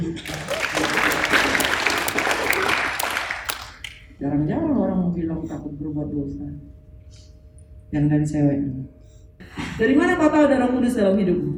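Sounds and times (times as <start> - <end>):
audience applause: 0.2 - 3.9
speech: 5.2 - 7.3, 7.9 - 9.0, 9.6 - 11.5.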